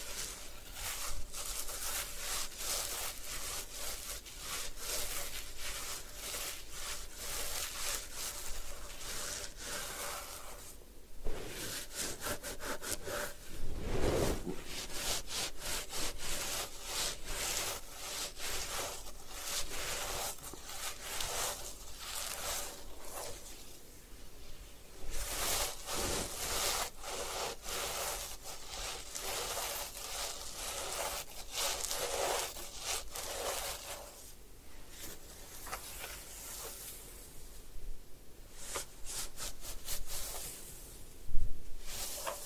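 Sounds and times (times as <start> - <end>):
sharp scrape: 0.0 - 23.6, 25.1 - 34.2
hair washing and scalp massage rubbing and scratching: 0.0 - 23.8, 25.0 - 34.3, 35.0 - 36.9, 38.6 - 40.6, 41.8 - 42.4.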